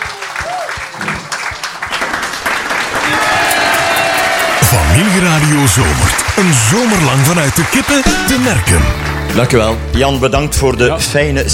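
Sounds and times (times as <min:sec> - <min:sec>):
thunderous audience applause: 0:00.0 - 0:09.7
speech: 0:05.0 - 0:11.5.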